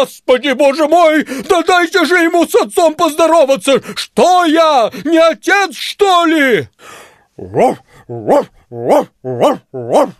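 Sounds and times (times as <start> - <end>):
speech: 0.0 - 10.1
huge black dog barking in a deep bass voice: 7.4 - 10.1.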